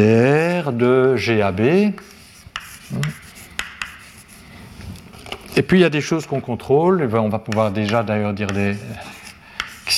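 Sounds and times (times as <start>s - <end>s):
speech: 0.0s - 2.2s, 2.9s - 3.2s, 5.6s - 9.2s
writing on a board during a seminar lecture: 2.0s - 4.4s, 7.5s - 9.9s.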